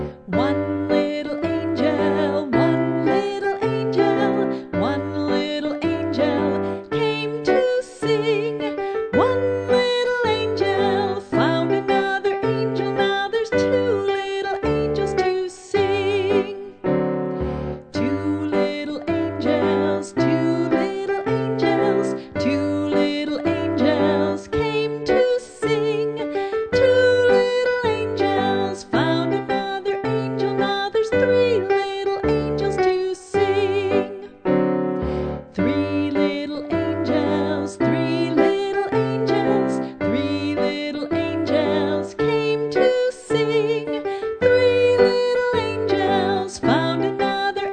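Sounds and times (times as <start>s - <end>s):
person singing: 0.1s - 17.0s, 17.8s - 47.6s.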